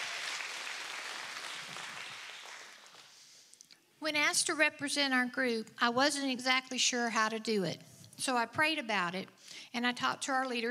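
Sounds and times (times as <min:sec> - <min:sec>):
audience applause: 0:00.0 - 0:03.1
speech: 0:04.0 - 0:10.7.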